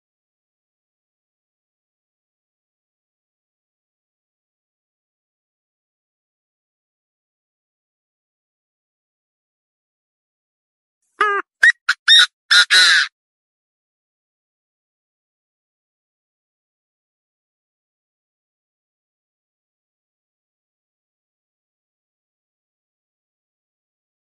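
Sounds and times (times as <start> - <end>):
partridge calling: 11.2 - 13.1.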